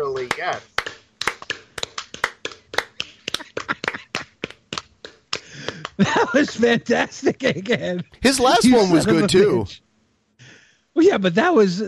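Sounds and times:
hand claps: 0.0 - 6.2
speech: 0.4 - 0.8, 6.0 - 9.8, 11.0 - 11.8
laughter: 2.9 - 4.6, 5.4 - 9.6.

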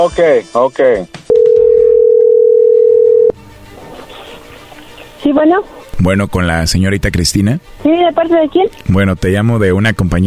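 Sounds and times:
speech: 0.0 - 1.2, 5.2 - 10.2
telephone ring tone: 1.3 - 3.4.

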